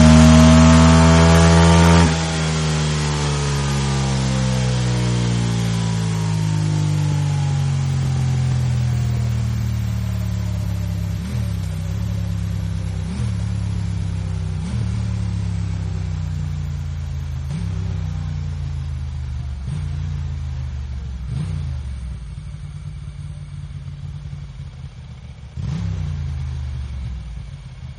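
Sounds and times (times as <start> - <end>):
motorcycle going fast: 0.0 - 27.9.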